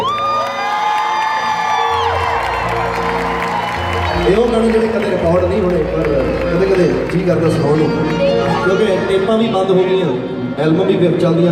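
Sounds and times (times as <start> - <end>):
live-show audience cheering and clapping: 0.0 - 8.9
speech: 4.3 - 11.5.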